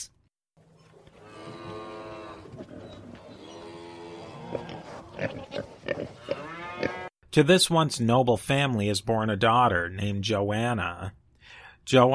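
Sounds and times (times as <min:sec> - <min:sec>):
cattle mooing on a small farm near Mainz in western Germany: 0:01.0 - 0:07.1
speech: 0:07.4 - 0:11.2, 0:11.8 - 0:12.1.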